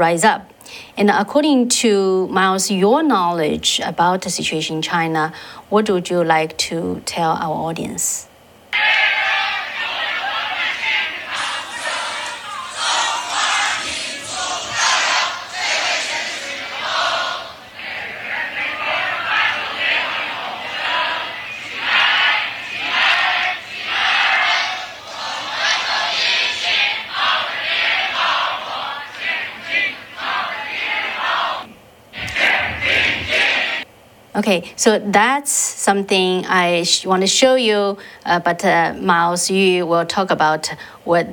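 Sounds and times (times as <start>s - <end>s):
speech: 0.0s - 8.9s, 34.5s - 41.3s
crowd singing a national anthem: 8.8s - 33.8s.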